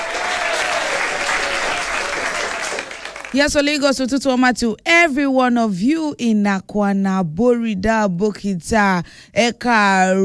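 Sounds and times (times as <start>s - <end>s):
audience clapping hands: 0.0s - 3.6s
speech: 3.3s - 10.2s.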